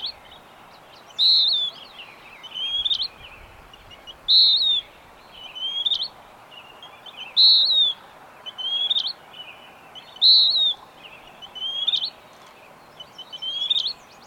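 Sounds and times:
bird singing whistled phrases: 1.2s - 1.8s, 4.3s - 4.9s, 5.6s - 6.1s, 7.3s - 9.2s, 10.1s - 10.8s, 11.5s - 12.2s, 13.2s - 14.0s.

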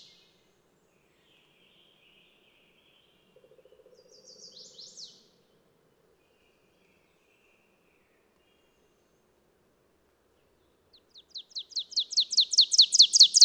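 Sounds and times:
bird singing high downslurred chips: 11.5s - 13.4s.

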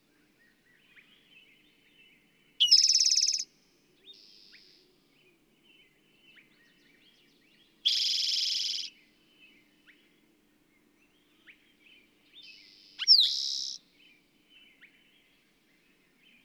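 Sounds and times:
bird rapid even trill of high notes: 2.6s - 3.4s, 7.9s - 8.9s, 13.0s - 13.8s.

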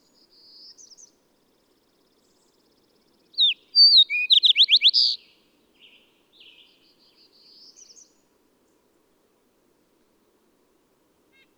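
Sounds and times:
bird song: 0.0s - 8.2s.

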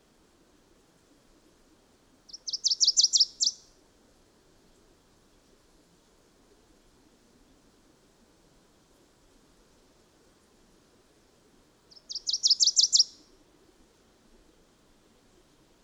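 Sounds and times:
bird song of high sweet chirped notes: 2.3s - 3.6s, 11.9s - 13.2s.

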